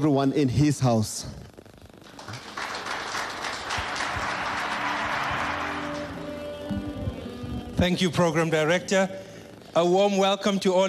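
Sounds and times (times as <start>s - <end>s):
speech: 0.0s - 1.4s, 7.8s - 10.8s
crowd applause: 2.0s - 7.2s.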